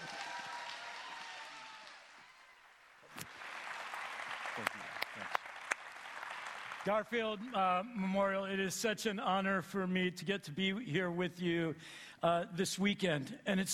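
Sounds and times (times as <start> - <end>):
audience cheering: 0.0 - 7.0
audience clapping: 0.0 - 7.8
speech: 4.6 - 5.3, 6.8 - 13.7.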